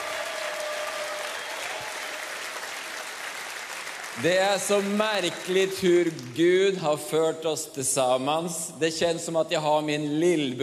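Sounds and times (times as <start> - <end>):
audience applause: 0.0 - 6.4
speech: 4.2 - 10.6.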